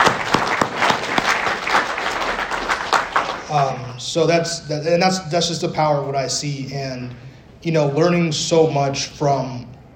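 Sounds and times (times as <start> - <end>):
crowd applause: 0.0 - 3.9
speech: 3.6 - 9.7.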